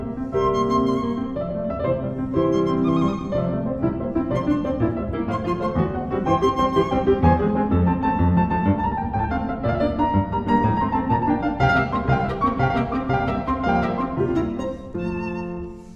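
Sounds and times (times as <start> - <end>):
violin and piano sonata allegro: 0.0 - 15.9.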